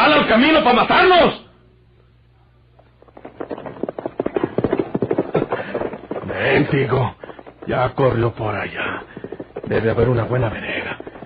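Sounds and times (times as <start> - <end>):
speech: 0.3 - 1.4, 6.4 - 9.1, 9.7 - 10.8
riderless spooked horse galloping: 2.7 - 11.2.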